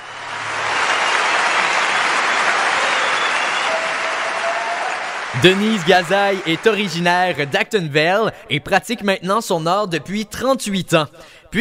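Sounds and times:
audience applause welcoming a guest: 0.0s - 7.7s
speech: 5.4s - 11.5s.

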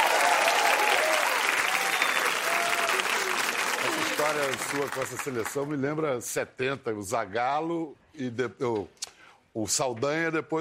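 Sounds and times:
studio audience applause: 0.0s - 5.7s
whistles: 1.8s - 2.5s
speech: 4.2s - 10.6s.

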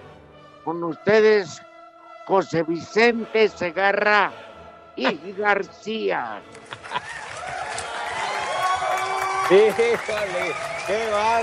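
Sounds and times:
speech: 0.6s - 1.7s, 2.3s - 7.0s, 9.5s - 11.4s
laughter: 6.5s - 11.4s
crowd applause: 6.6s - 11.4s
cheering voices: 7.0s - 11.4s.

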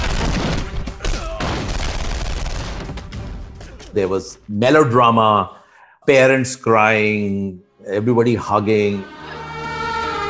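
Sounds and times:
gunfire in a Bollywood action film scene: 0.0s - 3.8s
speech: 3.9s - 9.2s.

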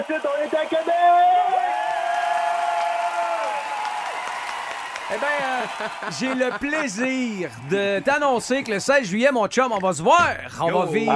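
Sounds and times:
speech: 0.0s - 1.9s, 5.1s - 11.1s
shouts and whoops: 0.0s - 6.5s
concert crowd applauding and cheering: 0.0s - 9.1s
laughter: 5.2s - 7.6s.

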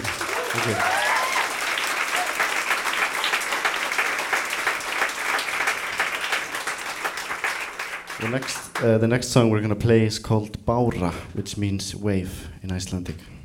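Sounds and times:
audience applause for band: 0.0s - 8.9s
speech: 0.6s - 1.0s, 8.2s - 13.4s.

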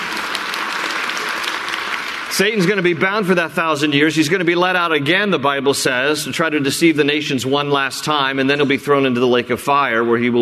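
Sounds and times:
audience applause: 0.0s - 3.4s
speech: 2.4s - 10.4s.

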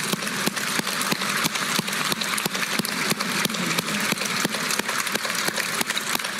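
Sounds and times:
standing ovation applause: 0.0s - 6.3s.

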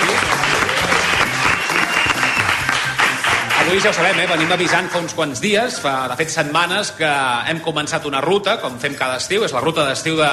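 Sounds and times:
live audience applause: 0.0s - 5.0s
speech: 3.7s - 10.3s.

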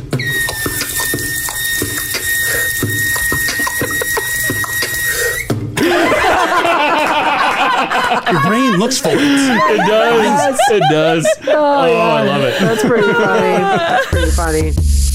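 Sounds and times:
bathroom faucet running: 0.2s - 5.5s
thin high whining squeal: 0.2s - 5.5s
laughter: 5.8s - 14.7s
speech: 8.5s - 15.0s.

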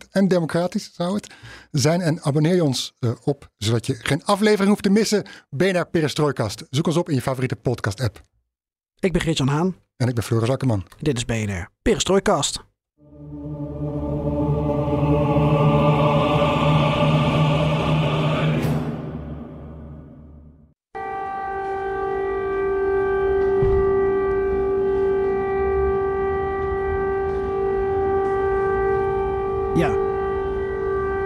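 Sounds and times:
speech: 0.2s - 8.4s, 9.0s - 13.8s
air raid siren in Zaporizhzhia: 13.0s - 31.2s.

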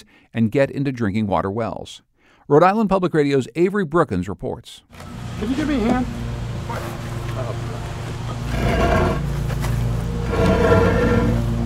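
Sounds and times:
speech: 0.3s - 7.6s
heavy cement well cap sliding off: 8.4s - 11.6s.

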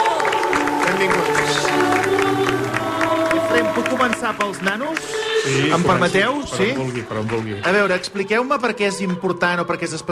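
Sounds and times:
loud applause: 0.0s - 8.1s
speech: 1.0s - 1.6s, 3.6s - 10.0s.

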